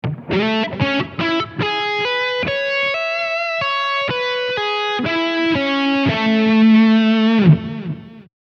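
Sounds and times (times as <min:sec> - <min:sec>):
guitar A major ninth chord: 0:00.0 - 0:08.3.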